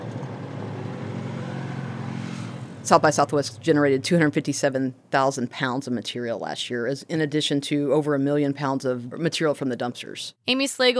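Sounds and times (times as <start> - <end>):
ATV loaded with bin bags driving off: 0.0 - 4.2
speech: 2.9 - 10.9.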